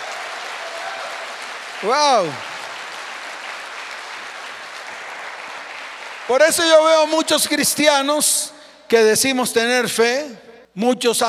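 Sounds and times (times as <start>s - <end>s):
audience applause: 0.0s - 7.2s
speech: 1.8s - 2.5s, 6.3s - 11.2s.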